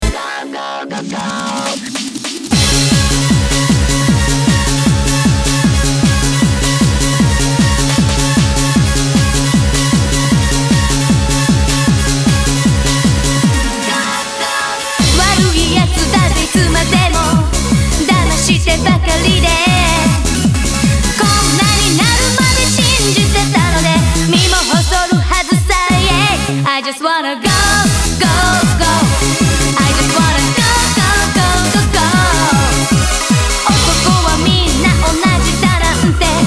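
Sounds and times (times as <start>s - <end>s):
eurobeat music: 0.0s - 36.4s.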